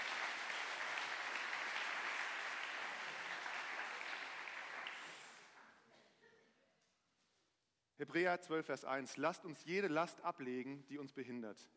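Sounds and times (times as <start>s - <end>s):
audience applause: 0.0s - 5.6s
speech: 8.0s - 11.7s.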